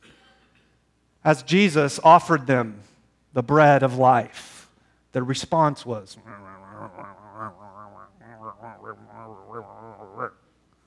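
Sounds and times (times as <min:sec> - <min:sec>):
speech: 0:01.2 - 0:04.4, 0:05.2 - 0:10.4
voice imitating mumbling under one's breath: 0:05.5 - 0:10.4.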